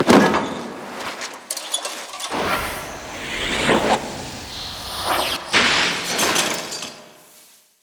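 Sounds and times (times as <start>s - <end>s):
emote death sound effect: 2.3s - 7.0s.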